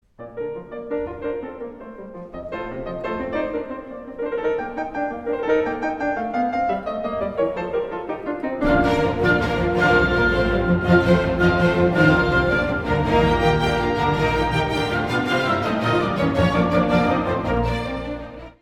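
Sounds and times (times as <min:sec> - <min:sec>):
piano concerto: 0:00.0 - 0:18.6.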